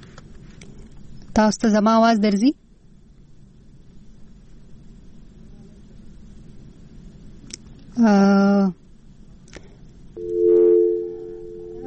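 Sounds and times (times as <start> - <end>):
speech: 1.4 - 2.6, 8.0 - 8.8
telephone line tones as a caller is cut off during a radio call-in: 10.2 - 11.8.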